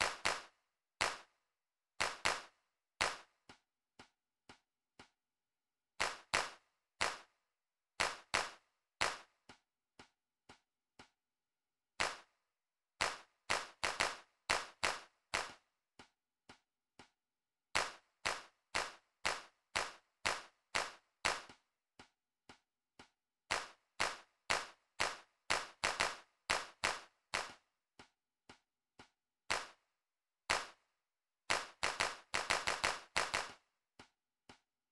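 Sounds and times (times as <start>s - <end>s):
hand clap: 0.0s - 1.3s, 2.0s - 3.6s, 6.0s - 7.3s, 8.0s - 9.6s, 12.0s - 12.3s, 13.0s - 15.7s, 17.8s - 21.6s, 23.5s - 27.7s, 29.0s - 29.8s, 30.5s - 30.8s, 31.5s - 33.6s.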